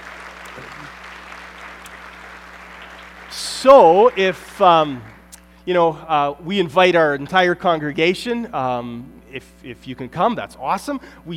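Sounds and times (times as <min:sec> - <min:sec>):
audience applause: 0:00.0 - 0:05.2
speech: 0:00.6 - 0:01.0, 0:03.3 - 0:11.3.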